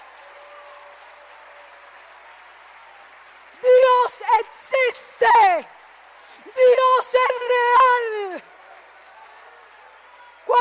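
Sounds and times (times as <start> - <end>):
audience applauding: 0.0 - 10.5
speech: 6.6 - 8.5.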